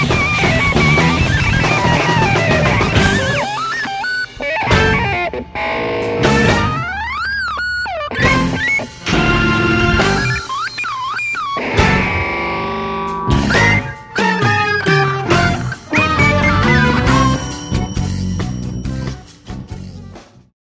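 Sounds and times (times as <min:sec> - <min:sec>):
trading solos on synth guitar: 0:00.0 - 0:20.4.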